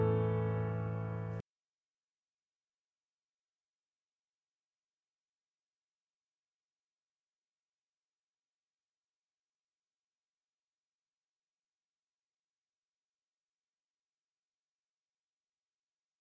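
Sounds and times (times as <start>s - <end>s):
instrumental hymn: 0.0s - 1.4s.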